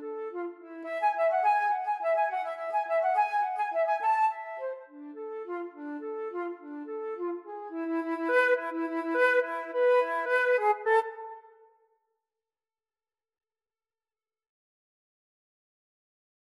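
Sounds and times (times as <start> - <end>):
flute duet: 0.0 - 11.6.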